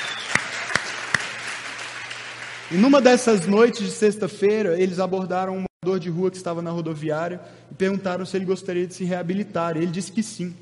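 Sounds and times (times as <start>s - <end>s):
louder sharper claps: 0.0s - 3.0s
audience applause: 0.0s - 3.4s
speech: 2.7s - 10.6s.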